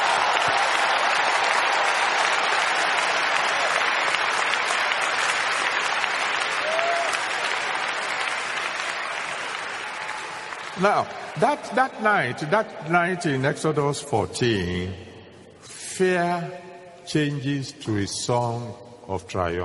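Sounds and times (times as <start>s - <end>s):
audience applause: 0.0s - 12.7s
speech: 10.8s - 15.1s, 16.0s - 19.6s.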